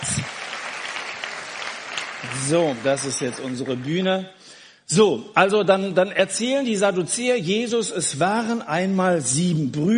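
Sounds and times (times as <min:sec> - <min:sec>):
audience applause: 0:00.0 - 0:04.2
speech: 0:02.2 - 0:09.9.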